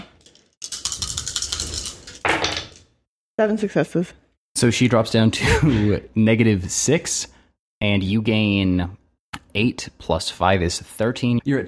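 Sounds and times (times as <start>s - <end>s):
dice being rolled: 0.0s - 2.9s
speech: 3.4s - 11.6s.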